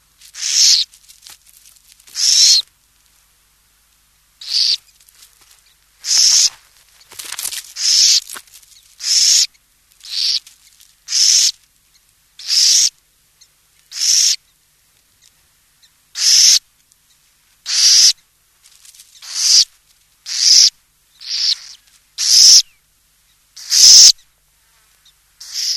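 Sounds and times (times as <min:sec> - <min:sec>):
burrowing owl giving harsh hissing rasps: 0:00.3 - 0:00.9, 0:02.1 - 0:02.7, 0:04.4 - 0:04.8, 0:06.0 - 0:06.6, 0:07.8 - 0:08.3, 0:09.0 - 0:10.4, 0:11.1 - 0:11.6, 0:12.4 - 0:12.9, 0:13.9 - 0:14.4, 0:16.2 - 0:16.6, 0:17.6 - 0:18.2, 0:19.2 - 0:22.8, 0:23.6 - 0:24.2, 0:25.4 - 0:25.7.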